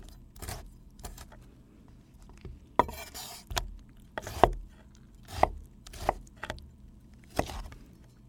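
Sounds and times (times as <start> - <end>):
tomato being cut: 0.0 - 1.4, 2.8 - 6.6, 7.3 - 7.8.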